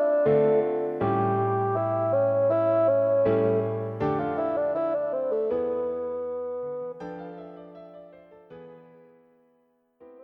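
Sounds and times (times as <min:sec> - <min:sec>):
piano: 0:00.0 - 0:10.2
bassoon: 0:01.0 - 0:06.9.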